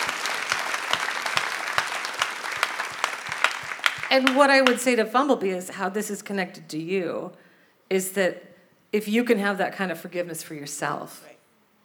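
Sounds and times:
audience applause: 0:00.0 - 0:04.9
speech: 0:04.1 - 0:11.3.

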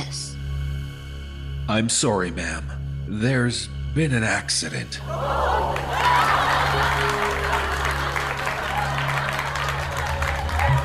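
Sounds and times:
speech: 0:01.7 - 0:07.4
studio audience laughter: 0:05.1 - 0:10.8.

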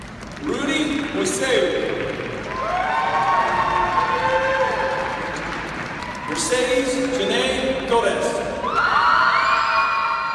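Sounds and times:
speech: 0:00.4 - 0:03.0, 0:06.4 - 0:08.4
boisterous crowd cheering and whooping at a graduation ceremony: 0:02.4 - 0:07.6, 0:08.5 - 0:10.3.

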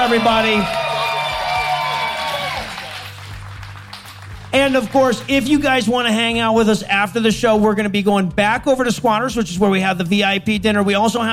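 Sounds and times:
audience cheering: 0:00.0 - 0:03.4
audience applause: 0:00.0 - 0:05.4
speech: 0:00.1 - 0:00.8, 0:04.5 - 0:11.3.

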